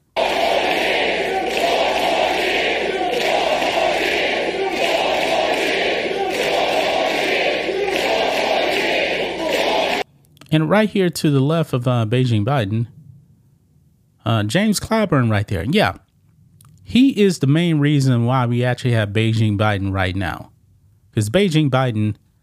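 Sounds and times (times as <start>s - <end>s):
crowd screaming chant: 0.0s - 10.0s
speech: 10.5s - 13.0s, 14.3s - 16.0s, 16.9s - 20.5s, 21.2s - 22.2s.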